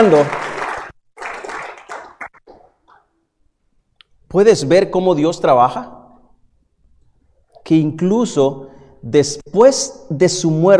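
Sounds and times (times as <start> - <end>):
speech: 0.0 - 0.5, 4.3 - 6.0, 7.6 - 10.7
congregation clapping during a church service: 0.0 - 3.0.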